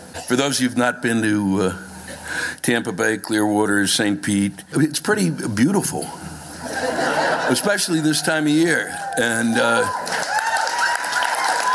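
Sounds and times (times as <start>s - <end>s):
speech: 0.3s - 1.9s, 2.6s - 6.2s, 7.5s - 10.3s
laughter: 6.6s - 8.2s
half-hearted audience applause: 9.0s - 11.7s.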